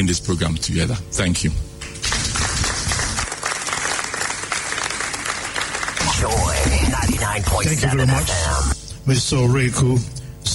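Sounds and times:
speech: 0:00.0 - 0:02.2, 0:06.2 - 0:10.2
audience applause after a speech by a central-bank fintech official: 0:02.0 - 0:07.4.

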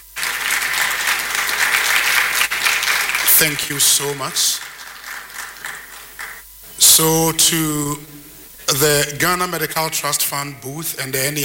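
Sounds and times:
audience applause: 0:00.0 - 0:07.0
speech: 0:03.4 - 0:04.7, 0:07.0 - 0:11.4.

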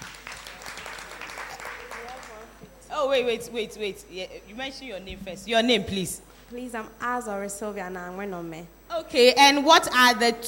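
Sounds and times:
faint audience applause at a toothpaste promotion quiz: 0:00.0 - 0:02.6
speech: 0:03.0 - 0:10.4.

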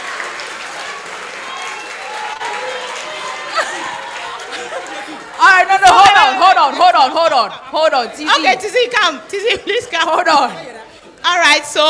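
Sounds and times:
audience clapping: 0:00.0 - 0:06.5
laughter: 0:03.0 - 0:08.6
speech: 0:05.9 - 0:10.7, 0:11.3 - 0:11.8.

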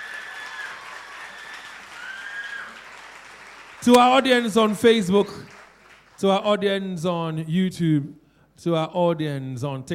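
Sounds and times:
audience applause for contest competitors: 0:00.0 - 0:06.2
speech: 0:03.8 - 0:05.6, 0:06.2 - 0:09.9.

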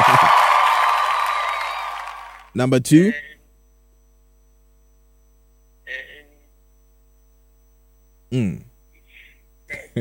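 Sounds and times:
bright whooping voices: 0:00.0 - 0:02.5
crowd cheering and clapping: 0:00.0 - 0:02.5
speech: 0:02.6 - 0:03.3, 0:08.3 - 0:08.7.

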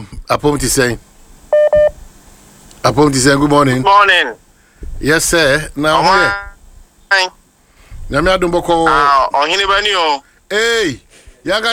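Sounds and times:
speech: 0:00.3 - 0:01.1, 0:02.8 - 0:04.4, 0:05.0 - 0:06.5, 0:07.1 - 0:07.4, 0:08.1 - 0:11.7
telephone keypad tones: 0:01.6 - 0:01.9.

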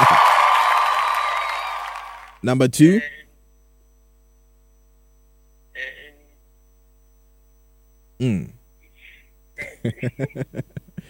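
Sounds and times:
applause and cheering: 0:00.0 - 0:02.4
speech: 0:02.4 - 0:03.2, 0:08.2 - 0:08.6, 0:09.6 - 0:11.0
laughter: 0:09.6 - 0:11.0.

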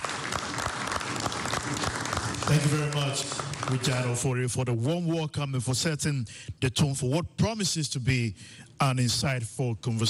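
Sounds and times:
audience applause: 0:00.0 - 0:04.2
speech: 0:02.5 - 0:10.0.

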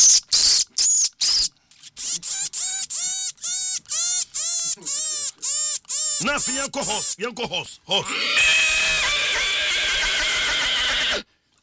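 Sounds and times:
speech: 0:06.2 - 0:08.5
horse neighing: 0:08.0 - 0:11.2.

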